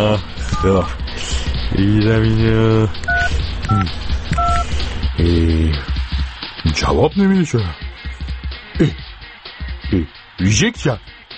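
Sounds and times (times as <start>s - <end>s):
speech: 0.0s - 3.1s, 3.7s - 4.4s, 5.2s - 6.0s, 6.7s - 7.8s, 8.8s - 9.0s, 9.9s - 11.1s
touch-tone keypad beeps dialing a telephone number: 0.5s - 0.8s, 3.1s - 4.6s.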